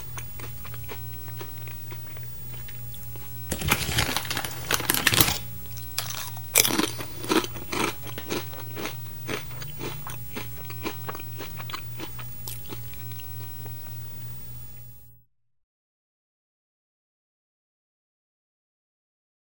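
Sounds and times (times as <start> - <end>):
person eating snack food: 0.0 - 13.8.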